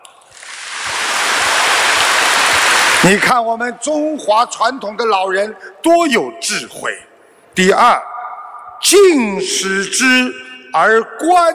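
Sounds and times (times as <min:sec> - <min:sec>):
applause: 0:00.3 - 0:03.3
speech: 0:03.0 - 0:08.1, 0:08.8 - 0:11.5.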